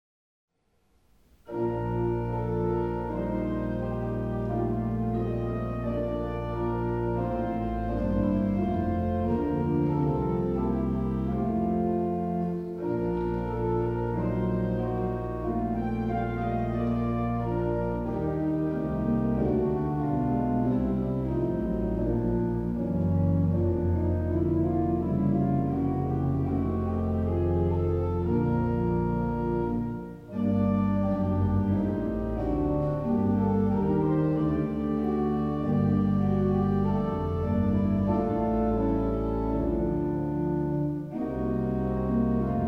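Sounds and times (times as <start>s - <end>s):
organ music in B-flat major: 1.4s - 42.6s.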